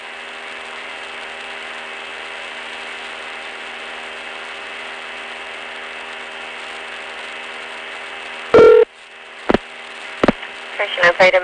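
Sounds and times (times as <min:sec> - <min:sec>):
telephone line hiss: 0:08.4 - 0:08.9
touch-tone telephone dialing: 0:08.6 - 0:08.8
speech: 0:10.8 - 0:11.4.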